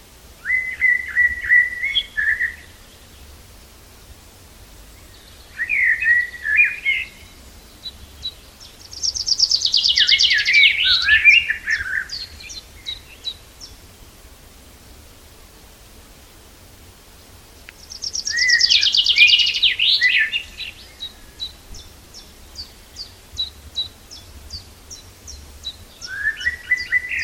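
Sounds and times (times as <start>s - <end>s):
common chaffinch song: 0.0s - 27.2s.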